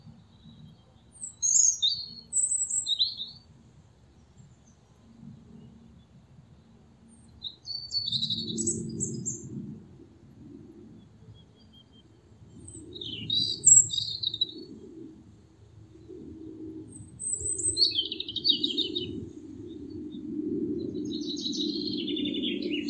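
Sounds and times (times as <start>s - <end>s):
European robin singing: 0.3s - 3.5s, 7.2s - 9.5s, 11.6s - 14.7s, 16.9s - 19.9s, 20.8s - 22.8s.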